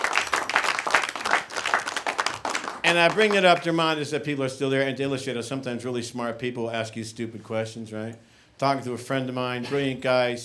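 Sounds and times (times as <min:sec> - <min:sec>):
audience applause: 0:00.0 - 0:03.6
speech: 0:02.9 - 0:10.4.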